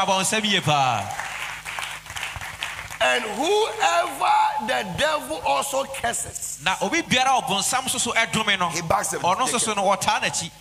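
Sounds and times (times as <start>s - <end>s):
speech: 0.0s - 1.2s, 3.0s - 10.5s
audience clapping hands: 0.5s - 3.9s.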